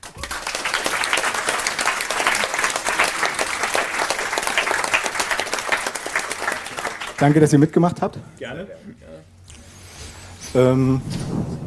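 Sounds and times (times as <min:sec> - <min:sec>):
audience applause: 0:00.0 - 0:07.8
speech: 0:07.2 - 0:09.4, 0:10.5 - 0:11.6.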